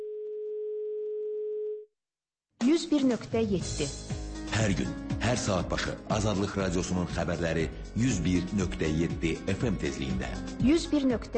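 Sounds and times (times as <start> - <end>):
telephone tone of a failed call connection: 0.0 - 1.9
speech: 2.8 - 11.3.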